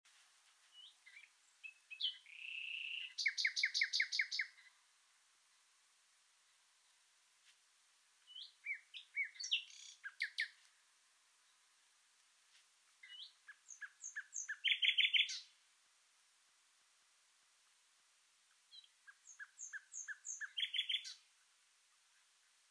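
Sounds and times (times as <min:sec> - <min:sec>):
common nightingale singing: 0:00.7 - 0:04.8, 0:08.2 - 0:10.6, 0:13.0 - 0:15.6, 0:18.5 - 0:22.7.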